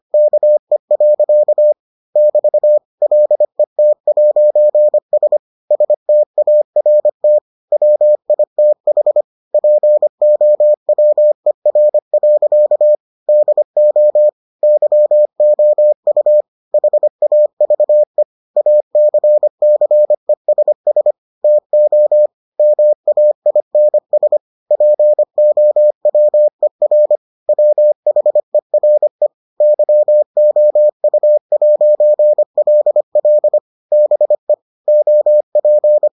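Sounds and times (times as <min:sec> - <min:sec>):
morse code beeps: 0:00.2 - 0:36.1.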